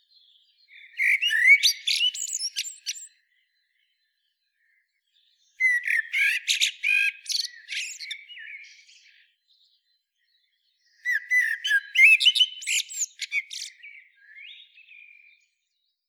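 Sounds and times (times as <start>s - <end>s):
Eurasian blackbird song: 0.0s - 16.0s.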